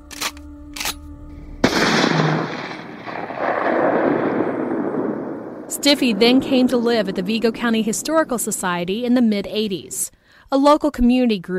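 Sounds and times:
gun being readied clicks: 0.0 - 3.5
shotgun blast: 1.6 - 7.7
speech: 5.8 - 11.5.

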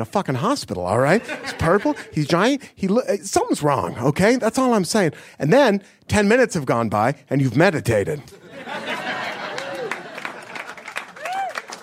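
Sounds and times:
speech: 0.0 - 8.9
laughter: 1.0 - 2.5, 8.3 - 11.5
audience clapping: 9.2 - 11.8.

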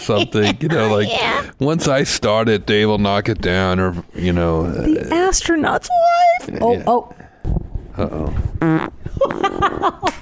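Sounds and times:
speech: 0.0 - 10.2
fart: 8.6 - 9.4.

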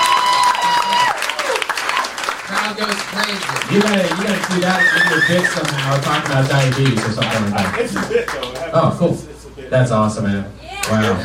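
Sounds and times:
crowd cheering and applauding wildly: 0.0 - 8.7
speech: 2.7 - 11.2.

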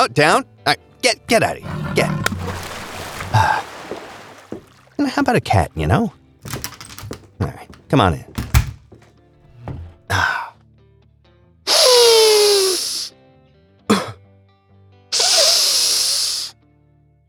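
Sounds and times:
speech: 0.0 - 2.6, 5.0 - 6.6, 7.4 - 8.4
forceful inhalations through the nose: 11.7 - 13.1, 15.2 - 16.5
nasal spray squirted: 11.7 - 13.1, 15.2 - 16.5.

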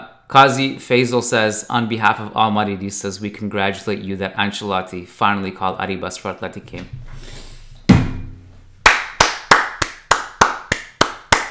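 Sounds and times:
speech: 0.3 - 7.4
hand claps: 8.8 - 11.5.

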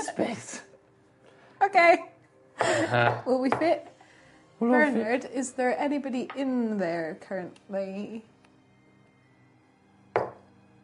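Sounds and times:
speech: 0.2 - 0.6, 1.7 - 3.9, 4.6 - 8.3
knocks on a table: 2.6 - 3.7, 10.2 - 10.4.

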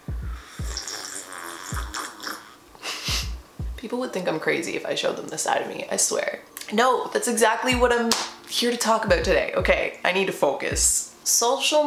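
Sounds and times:
person sipping tea: 0.4 - 2.6
speech: 3.8 - 11.8.

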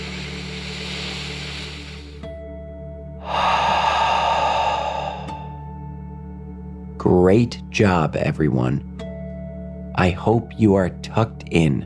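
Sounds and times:
deep breath in and out during a guided relaxation for children: 3.2 - 5.6
low steady hum: 3.2 - 5.6
speech: 7.0 - 8.9, 10.0 - 11.8.

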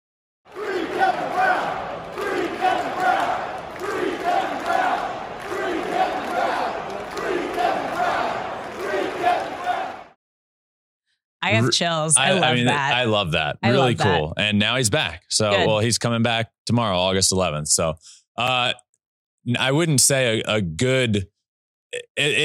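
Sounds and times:
Orioles fans chanting at a baseball game: 0.5 - 10.2, 11.4 - 14.4, 15.4 - 15.9
laughter: 11.4 - 18.8, 19.5 - 21.2, 22.0 - 22.4
speech: 11.5 - 18.8, 19.4 - 21.3, 21.9 - 22.4.

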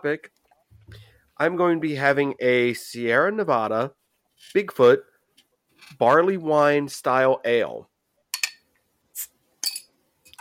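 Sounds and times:
speech: 0.0 - 5.1, 5.8 - 7.9
bright clatter of glass: 8.3 - 8.6, 9.6 - 10.4
glassy clinks: 8.3 - 8.6, 9.6 - 10.4.

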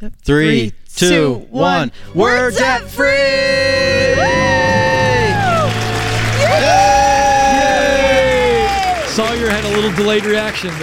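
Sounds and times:
speech: 0.0 - 4.9, 9.2 - 10.8
cheering: 3.5 - 10.8
clapping: 5.3 - 10.8.

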